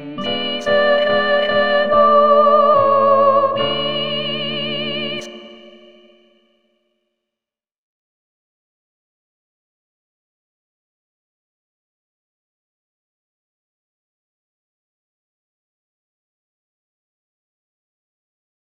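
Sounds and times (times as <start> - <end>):
soprano singing a sacred aria: 0.0 - 6.3.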